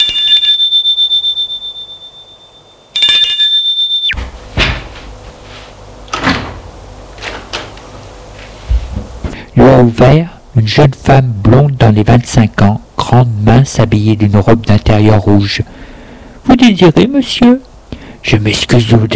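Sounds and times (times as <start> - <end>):
doorbell ringing at apartment door: 0.0 - 4.2
speech: 9.9 - 15.8, 16.5 - 19.1.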